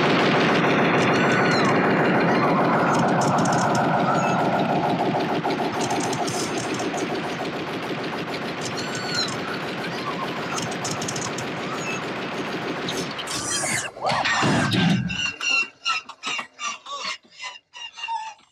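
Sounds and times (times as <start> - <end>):
machine-gun fire from a robot in a film scene: 0.0 - 13.9
engine-like drone: 0.0 - 15.4.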